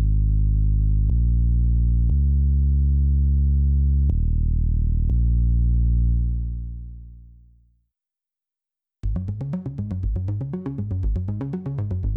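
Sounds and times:
bass: 0.0s - 7.7s, 9.0s - 12.1s
synth pads: 9.1s - 12.1s.

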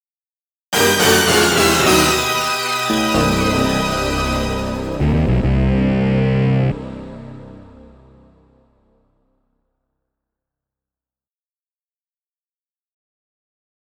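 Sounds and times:
judging fail sound effect: 0.8s - 8.3s.

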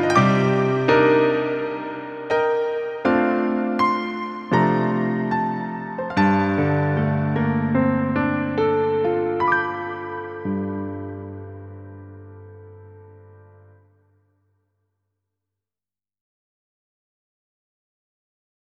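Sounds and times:
ambient piano: 0.0s - 14.2s.

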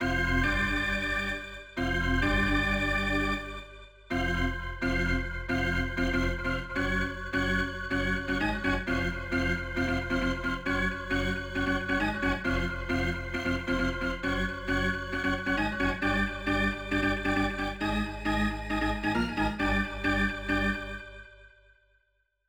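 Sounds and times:
organ: 0.0s - 21.2s.

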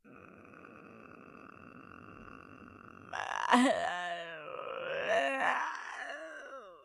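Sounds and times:
person groaning: 3.1s - 6.8s.

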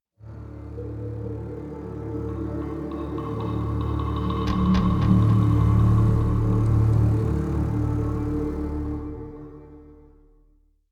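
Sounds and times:
intro music: 1.8s - 9.9s.

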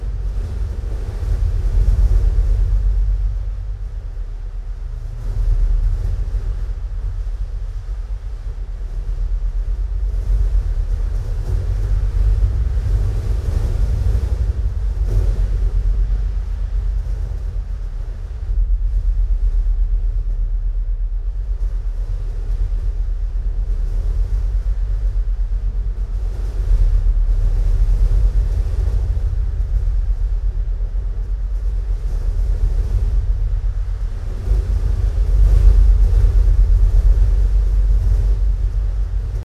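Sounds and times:
temple winds indoors: 0.0s - 39.4s.

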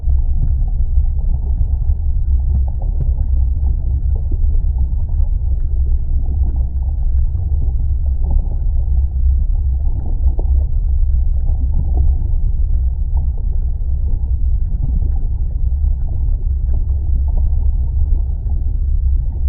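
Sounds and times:
volcano ambience: 0.0s - 19.4s.

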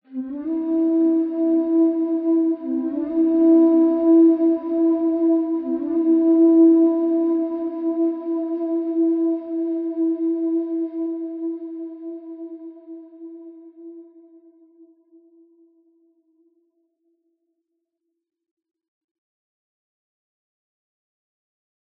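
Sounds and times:
flute stinger: 0.1s - 14.0s.

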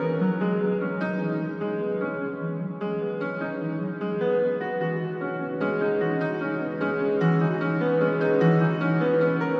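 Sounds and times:
piano layer: 0.0s - 9.5s.

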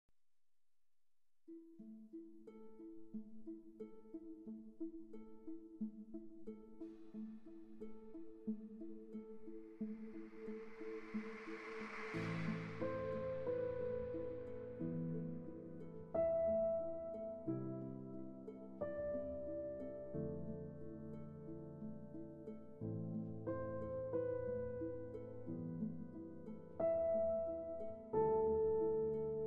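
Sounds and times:
piano suite: 6.5s - 29.4s.

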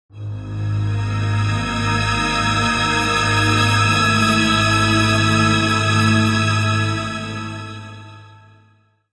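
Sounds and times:
foreboding industrial music: 0.1s - 8.5s.

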